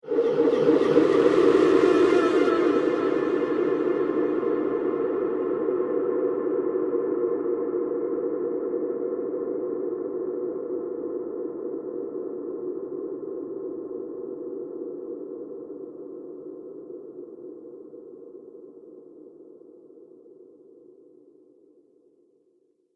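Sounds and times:
horror screams: 0:00.0 - 0:06.3
scary horror soundscape: 0:00.0 - 0:14.1.

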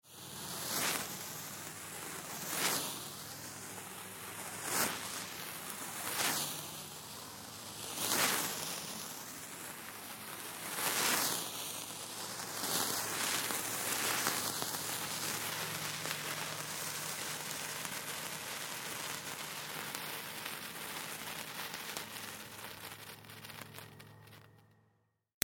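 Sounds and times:
multiple fire sparklers burning past: 0:00.1 - 0:24.6.

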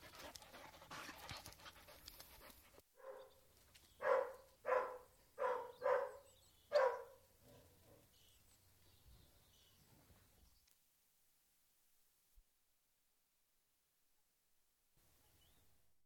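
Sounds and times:
collie-Airedale cross dogs barking indoors: 0:03.0 - 0:03.3, 0:04.0 - 0:08.0.

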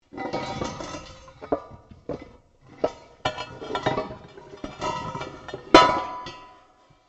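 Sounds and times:
large metal on metal movement: 0:00.1 - 0:06.4.

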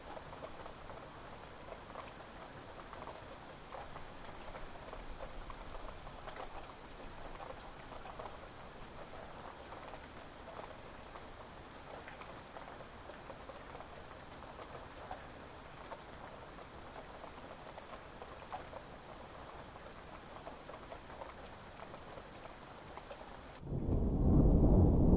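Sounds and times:
light rain: 0:00.0 - 0:25.1
thunder: 0:23.6 - 0:25.1.

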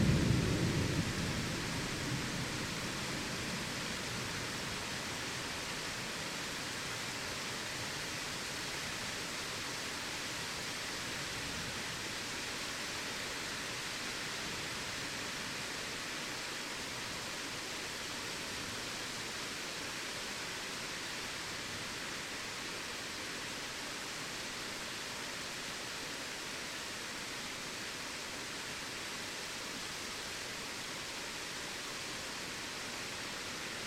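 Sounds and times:
thunder in a storm: 0:00.0 - 0:03.8
heavy rain in a storm: 0:00.0 - 0:33.8.

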